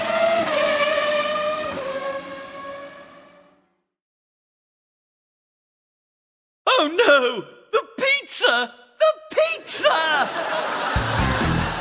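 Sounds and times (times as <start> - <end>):
race car engine passing in a motor race: 0.0 - 3.6
speech: 6.8 - 11.2
laughter: 9.6 - 11.7.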